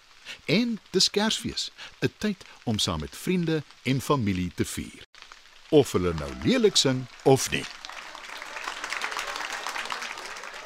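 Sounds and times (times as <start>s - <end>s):
speech: 0.5s - 7.8s
audience clapping hands: 5.8s - 10.6s.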